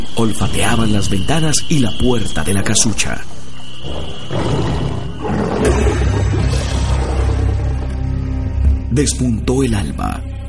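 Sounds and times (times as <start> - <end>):
speech: 0.2 - 4.6, 9.0 - 10.4
big cats roaring: 4.3 - 8.0.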